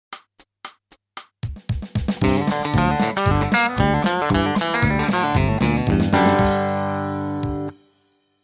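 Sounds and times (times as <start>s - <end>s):
country music: 2.2s - 7.8s.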